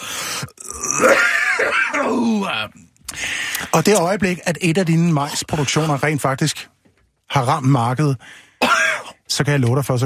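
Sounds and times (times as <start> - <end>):
person choking after swallowing the wrong way: 0.0 - 2.6
speech: 1.0 - 1.3, 2.2 - 6.7, 7.3 - 8.8, 9.4 - 10.0.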